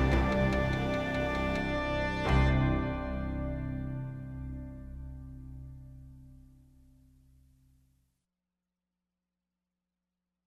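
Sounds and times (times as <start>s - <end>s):
hard promo music bed: 0.0s - 5.5s.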